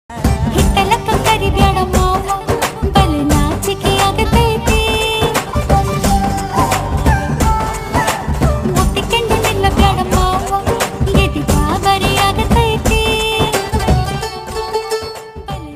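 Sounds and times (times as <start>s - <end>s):
Telugu folk dance song: 0.1s - 15.7s.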